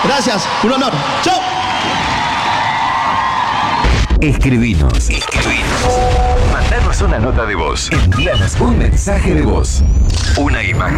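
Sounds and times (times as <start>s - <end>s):
audience cheering: 0.0s - 4.1s
speech: 0.1s - 2.1s, 4.2s - 10.9s.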